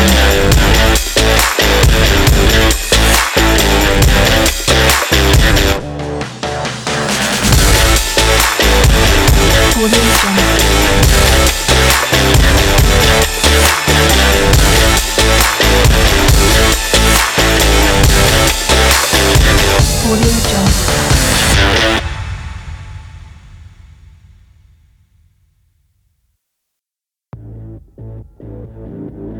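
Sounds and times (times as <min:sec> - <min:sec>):
fun sport big beat aggressive rock music: 0:00.0 - 0:22.8.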